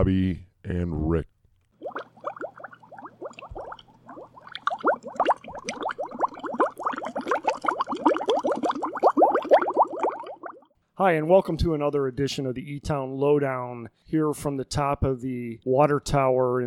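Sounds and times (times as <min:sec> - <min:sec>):
speech: 0:00.0 - 0:01.3, 0:11.0 - 0:16.6
hot tub water bubbling and gurgling: 0:01.8 - 0:10.7.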